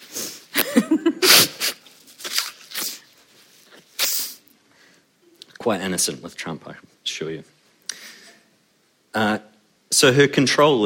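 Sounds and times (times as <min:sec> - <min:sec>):
person sneezing: 0:00.0 - 0:01.9, 0:03.9 - 0:04.5
speech: 0:05.6 - 0:07.6, 0:09.2 - 0:09.4, 0:10.0 - 0:10.8.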